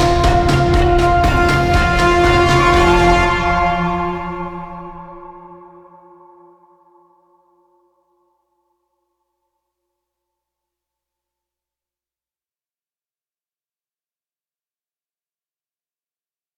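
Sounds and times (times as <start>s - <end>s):
shrine intro music: 0.0s - 5.8s.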